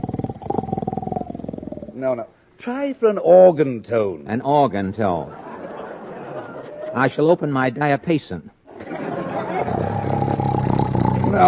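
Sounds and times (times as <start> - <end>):
voice imitating a snore: 0.0 - 2.0, 9.6 - 11.4
speech: 2.0 - 5.4, 6.9 - 8.5
laughter: 5.2 - 7.0, 8.7 - 10.3.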